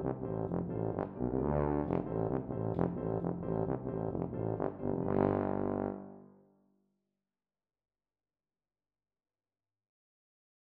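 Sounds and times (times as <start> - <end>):
tuba playing a folk dance: 0.0 - 6.3.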